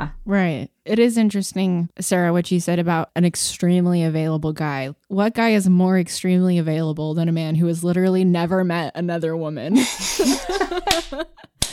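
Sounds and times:
speech: 0:00.0 - 0:11.5
person laughing: 0:09.7 - 0:11.7
hand slapping a thigh: 0:10.8 - 0:11.7.

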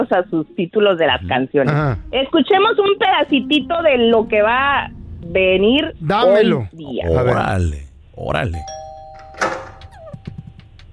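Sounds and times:
speech: 0:00.0 - 0:08.8
doorbell ringing: 0:08.6 - 0:10.0.

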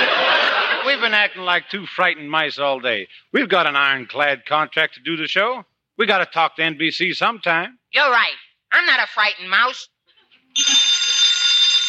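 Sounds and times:
laughter: 0:00.0 - 0:02.2
speech: 0:01.0 - 0:09.9
telephone bell ringing: 0:10.6 - 0:11.8.

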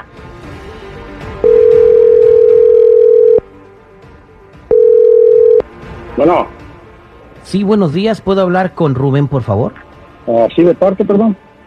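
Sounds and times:
telephone ringing: 0:01.4 - 0:03.4, 0:04.7 - 0:05.6
telephone dialing: 0:01.5 - 0:03.4
speech: 0:06.2 - 0:06.6, 0:07.5 - 0:11.4.

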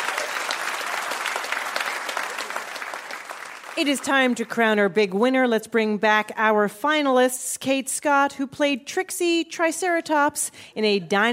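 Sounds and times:
audience applause: 0:00.0 - 0:04.2
speech: 0:03.8 - 0:11.3.

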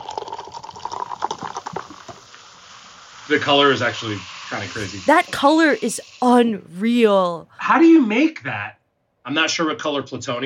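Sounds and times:
soda being poured into a glass: 0:00.0 - 0:02.0
speech: 0:03.3 - 0:10.4.

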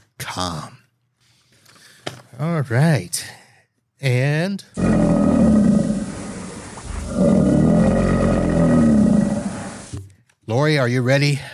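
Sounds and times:
speech: 0:00.3 - 0:00.8, 0:02.4 - 0:03.4, 0:04.0 - 0:05.1, 0:10.6 - 0:11.5
alligator call sound effect for the Florida Gator: 0:04.8 - 0:10.0.

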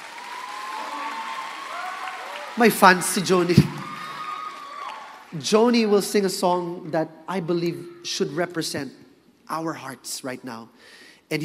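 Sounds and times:
audience clapping: 0:00.0 - 0:05.9
speech: 0:02.6 - 0:03.7, 0:05.4 - 0:11.4.

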